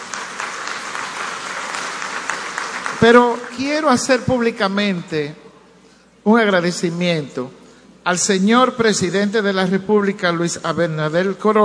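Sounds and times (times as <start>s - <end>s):
audience applause: 0.0s - 3.6s
speech: 3.0s - 5.4s, 6.2s - 11.6s.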